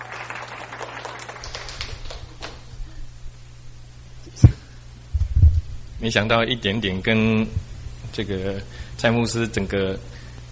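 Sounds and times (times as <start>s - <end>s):
audience clapping: 0.0s - 2.7s
low steady hum: 0.0s - 10.5s
speech: 6.0s - 10.2s.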